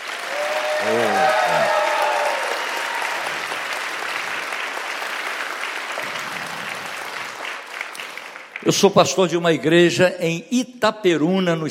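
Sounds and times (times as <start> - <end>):
audience applauding and clapping: 0.0 - 9.1
speech: 0.8 - 1.6, 8.7 - 11.7.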